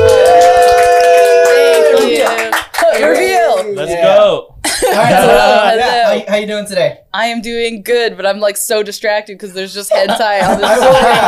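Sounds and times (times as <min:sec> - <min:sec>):
audience applause: 0:00.0 - 0:03.8
laughter: 0:04.6 - 0:06.3, 0:09.9 - 0:11.2
speech: 0:06.4 - 0:11.2.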